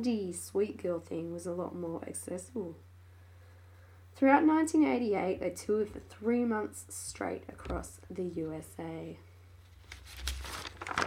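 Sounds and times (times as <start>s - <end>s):
speech: 0.0s - 2.9s, 4.2s - 9.3s
turning a sheet of paper: 9.6s - 11.0s.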